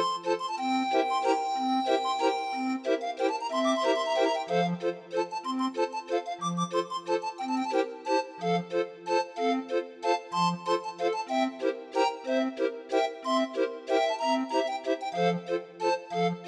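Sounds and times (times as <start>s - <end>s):
grind organ playing a waltz: 0.0s - 16.4s.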